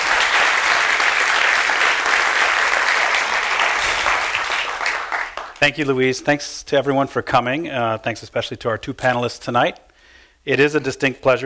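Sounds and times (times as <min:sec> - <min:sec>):
audience applause greeting a panel at a library foundation talk: 0:00.0 - 0:05.8
speech: 0:05.6 - 0:11.4.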